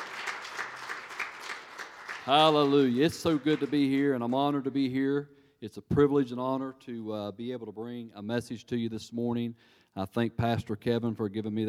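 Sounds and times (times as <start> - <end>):
crowd applauding: 0.0 - 4.7
speech: 2.3 - 11.6.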